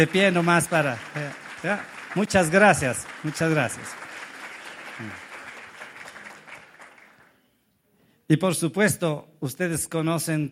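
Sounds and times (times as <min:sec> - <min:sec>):
speech: 0:00.0 - 0:04.0, 0:05.0 - 0:05.2, 0:08.3 - 0:10.4
audience applause: 0:00.0 - 0:07.4.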